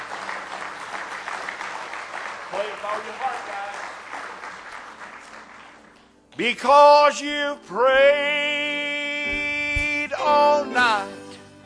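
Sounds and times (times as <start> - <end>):
audience clapping hands in praise: 0.0 - 6.8
speech: 2.6 - 3.8, 6.4 - 9.4, 10.2 - 11.2.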